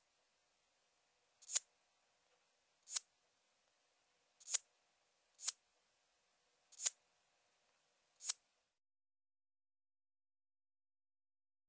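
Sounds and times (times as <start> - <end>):
Fork-tailed bush katydid Scudderia furcata song: 1.4 - 1.6, 2.9 - 3.1, 4.4 - 4.6, 5.4 - 5.6, 6.7 - 7.0, 8.2 - 8.4.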